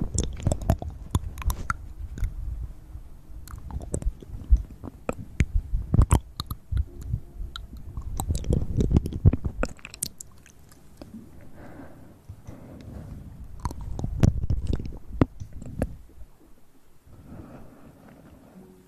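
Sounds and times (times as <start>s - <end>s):
wet mouth clicks and smacks: 0.1s - 2.4s, 3.4s - 5.2s, 6.0s - 6.9s, 8.0s - 10.8s, 13.6s - 15.9s.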